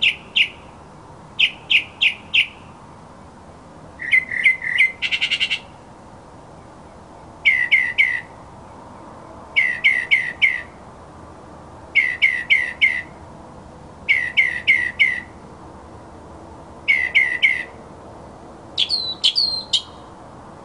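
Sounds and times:
mockingbird song: 0:00.0 - 0:00.6, 0:01.4 - 0:02.6, 0:04.0 - 0:05.7, 0:07.4 - 0:08.3, 0:09.6 - 0:10.8, 0:12.0 - 0:13.1, 0:14.1 - 0:15.4, 0:16.9 - 0:17.8, 0:18.8 - 0:20.1.

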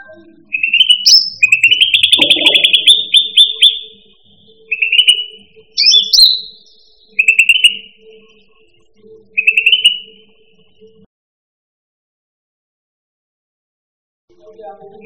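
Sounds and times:
cucak rante song: 0:00.0 - 0:11.1, 0:14.3 - 0:15.0.

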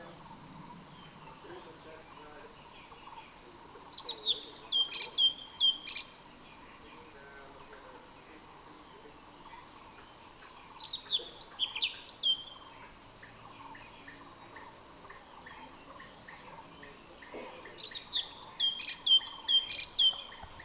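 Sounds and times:
orange-bellied leafbird song of rapid high twittering notes: 0:00.0 - 0:20.6.

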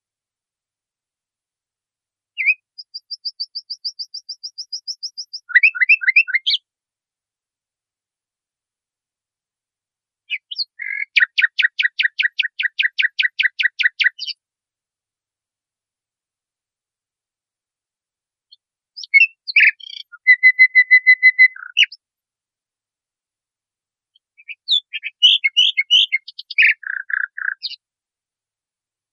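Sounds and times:
nightingale song: 0:02.4 - 0:06.7, 0:10.3 - 0:14.4, 0:18.5 - 0:22.1, 0:24.2 - 0:27.9.

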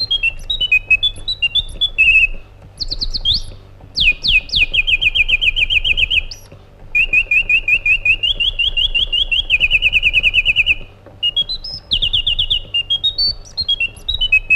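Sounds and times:
white-eared bulbul singing: 0:00.0 - 0:14.5.

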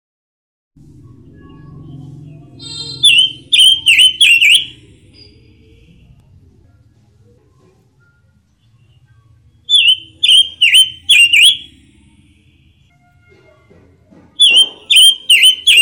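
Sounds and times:
robin singing whistled notes: 0:01.2 - 0:05.9, 0:08.8 - 0:11.8, 0:14.4 - 0:15.8.

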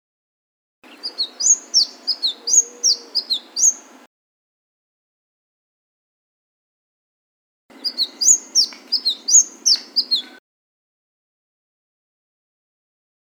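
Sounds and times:
Flame-breasted sunbird song of shrill slurred chirps: 0:00.8 - 0:04.1, 0:07.7 - 0:10.4.

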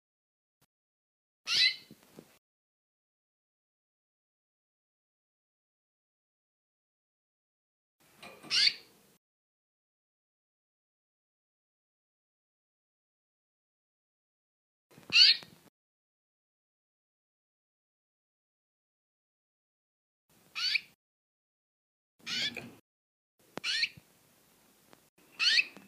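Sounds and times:
female canary singing: 0:01.5 - 0:02.0, 0:08.2 - 0:09.0, 0:15.0 - 0:15.6, 0:20.5 - 0:21.0, 0:22.2 - 0:22.8, 0:23.6 - 0:24.0, 0:25.2 - 0:25.8.

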